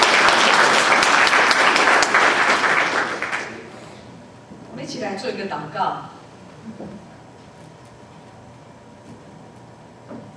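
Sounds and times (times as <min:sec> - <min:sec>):
warm applause from audience: 0:00.0 - 0:03.7
speech: 0:05.4 - 0:07.1.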